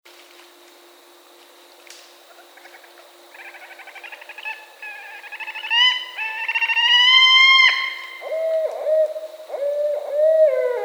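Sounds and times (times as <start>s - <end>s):
barred owl hooting: 2.3s - 10.8s.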